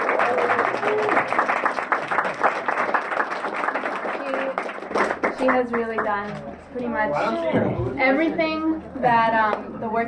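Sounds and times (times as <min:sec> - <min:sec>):
audience applause: 0:00.0 - 0:06.4
speech: 0:00.3 - 0:01.5, 0:05.4 - 0:10.0.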